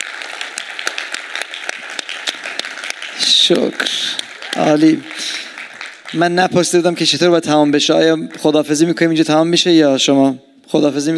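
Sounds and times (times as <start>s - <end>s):
congregation clapping at the close of a church gathering: 0.0s - 9.3s
speech: 3.5s - 5.4s, 6.1s - 11.1s.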